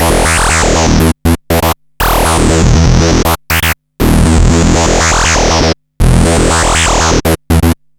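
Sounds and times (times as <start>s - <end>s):
industrial analog loop: 0.0s - 7.8s.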